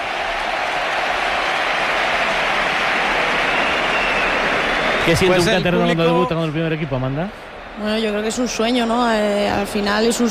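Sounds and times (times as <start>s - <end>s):
stadium crowd ovation: 0.0s - 10.2s
speech: 5.0s - 10.2s.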